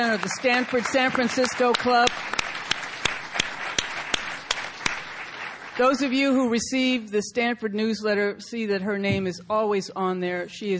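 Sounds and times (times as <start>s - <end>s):
speech: 0.0s - 2.4s, 5.8s - 10.7s
audience round of applause: 0.0s - 6.2s.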